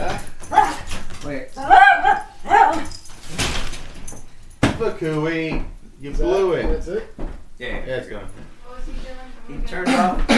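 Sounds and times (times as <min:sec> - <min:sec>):
dog whimpering and yelping barks: 0:01.6 - 0:03.0
speech: 0:05.0 - 0:10.3.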